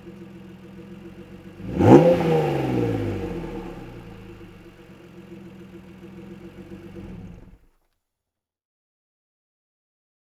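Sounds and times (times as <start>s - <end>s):
engine ignition and exhaust: 0.0s - 7.7s.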